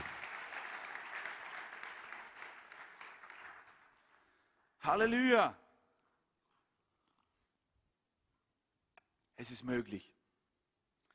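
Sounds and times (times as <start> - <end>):
crowd applauding: 0.0 - 4.4
speech: 4.8 - 5.6, 9.6 - 10.2.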